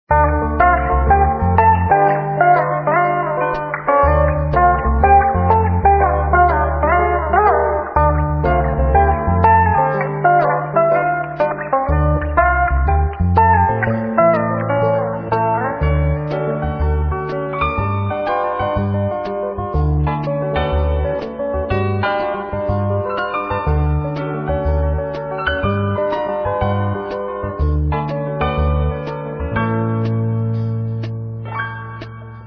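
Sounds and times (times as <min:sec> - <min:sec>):
music: 0:00.1 - 0:32.4.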